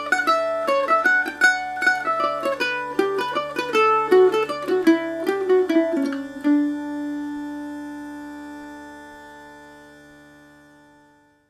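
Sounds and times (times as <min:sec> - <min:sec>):
double-tracked Macaferri mandolin playing Paris swing in D major: 0:00.0 - 0:08.7
Uilleann pipe drone: 0:00.0 - 0:11.4.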